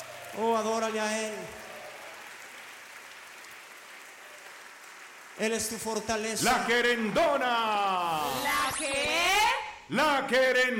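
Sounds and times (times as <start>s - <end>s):
loud applause in a worship service: 0.0s - 6.8s
speech: 0.4s - 1.6s, 5.4s - 9.3s, 9.9s - 10.7s.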